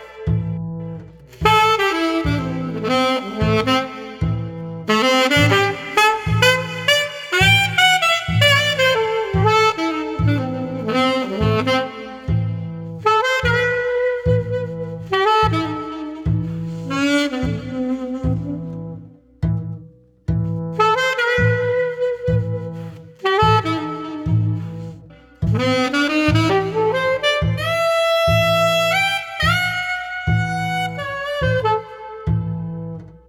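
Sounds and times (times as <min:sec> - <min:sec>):
moody street saxophone trio without drums: 0:00.0 - 0:33.2.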